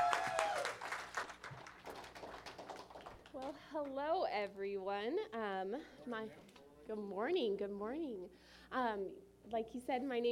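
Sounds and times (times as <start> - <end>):
audience applause: 0.0 - 3.5
speech: 3.8 - 10.3.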